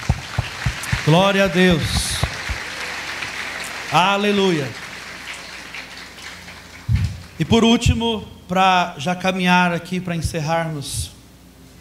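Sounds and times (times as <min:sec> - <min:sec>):
audience applause: 0:00.0 - 0:07.4
speech: 0:01.1 - 0:02.0, 0:03.9 - 0:04.8, 0:07.4 - 0:11.1.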